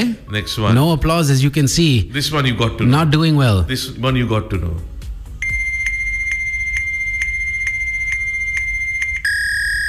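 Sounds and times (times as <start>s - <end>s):
speech: 0.0s - 4.9s
steady high-pitched fax machine tone: 5.4s - 9.8s.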